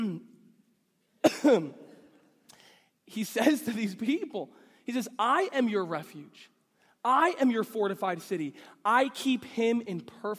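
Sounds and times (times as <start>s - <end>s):
speech: 1.2s - 1.8s, 3.1s - 10.3s
person choking coughing harshly: 1.2s - 2.2s.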